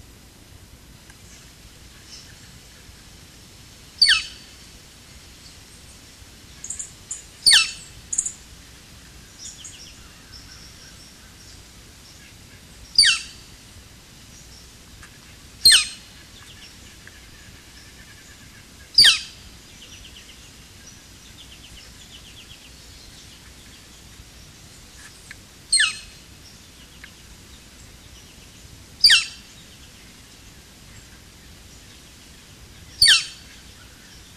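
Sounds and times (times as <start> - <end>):
pic flamboyant call: 4.0 - 4.5, 6.6 - 8.3, 13.0 - 13.4, 15.6 - 19.4, 25.7 - 26.2, 29.0 - 29.5, 33.0 - 33.6.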